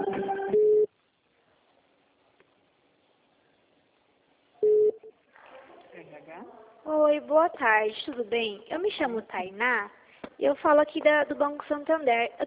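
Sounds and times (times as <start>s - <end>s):
telephone line beep: 0.2s - 0.9s
speech: 7.1s - 12.4s.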